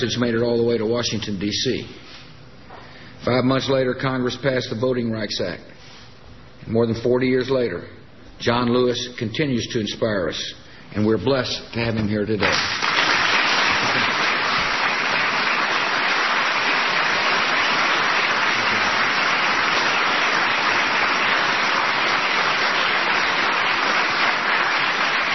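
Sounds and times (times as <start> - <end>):
speech: 0.0 - 2.2, 3.2 - 5.8, 6.6 - 12.8
large crowd applause: 12.5 - 25.3.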